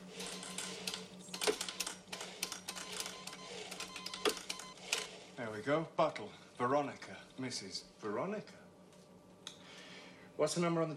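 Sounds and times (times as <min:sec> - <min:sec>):
low steady hum: 0:00.0 - 0:10.9
typing on a computer keyboard: 0:00.2 - 0:05.1
speech: 0:05.6 - 0:08.6, 0:10.4 - 0:10.9.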